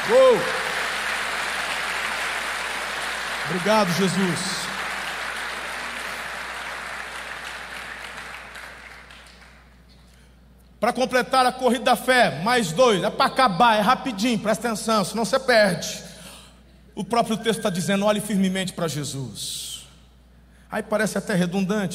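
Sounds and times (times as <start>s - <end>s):
audience applause: 0.0s - 9.7s
speech: 0.1s - 0.7s, 3.5s - 4.5s, 10.8s - 16.1s, 17.0s - 19.7s, 20.7s - 21.9s.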